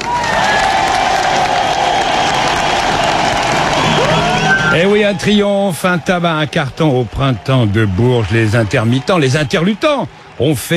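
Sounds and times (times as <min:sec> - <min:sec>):
applause: 0:00.0 - 0:10.7
speech: 0:04.8 - 0:10.7.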